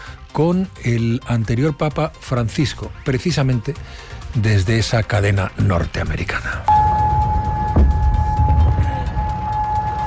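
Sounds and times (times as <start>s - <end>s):
speech: 0.4s - 6.9s
air raid warning sirens in Kuwait: 6.7s - 10.0s.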